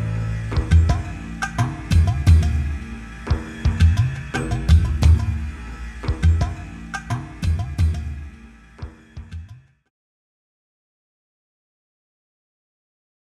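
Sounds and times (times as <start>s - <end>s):
authentic oud playing: 0.0s - 8.4s.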